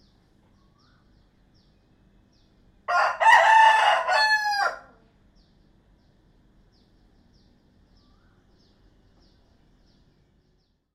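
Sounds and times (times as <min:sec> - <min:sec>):
rooster crowing: 0:02.9 - 0:05.0.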